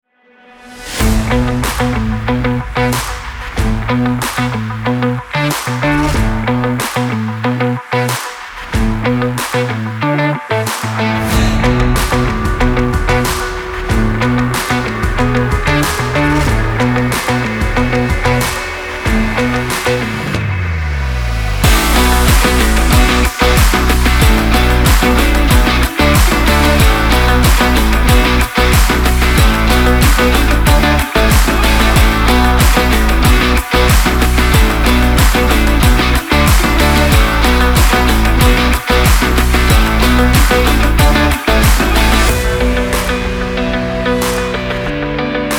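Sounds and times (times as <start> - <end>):
energetic action rock music: 0.8 - 45.5.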